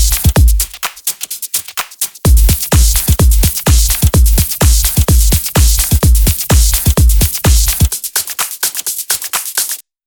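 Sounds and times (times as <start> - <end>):
hi-hats: 0.0 - 9.8.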